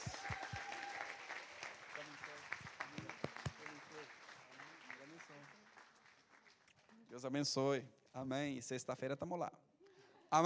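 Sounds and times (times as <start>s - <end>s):
audience applause: 0.0s - 7.3s
speech: 7.2s - 9.7s.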